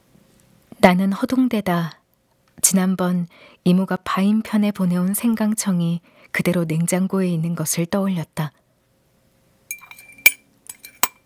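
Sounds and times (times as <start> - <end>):
speech: 0.8 - 2.0, 2.7 - 8.6
spoon clinking in a cup: 9.7 - 11.2.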